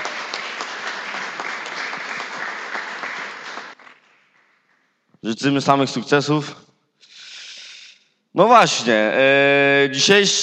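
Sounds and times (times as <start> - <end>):
audience applauding: 0.0 - 5.0
speech: 5.2 - 6.7, 8.4 - 10.4.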